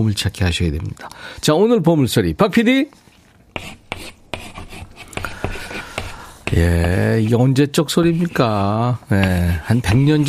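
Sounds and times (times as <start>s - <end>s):
speech: 0.0s - 3.0s, 6.5s - 10.2s
chalk writing on a blackboard: 3.5s - 7.4s, 8.0s - 10.2s.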